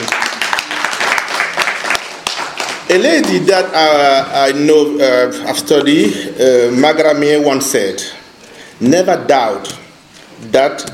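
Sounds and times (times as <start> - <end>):
audience applause for honored guests: 0.0 - 3.4
speech: 2.9 - 8.2, 8.8 - 9.8, 10.4 - 10.9.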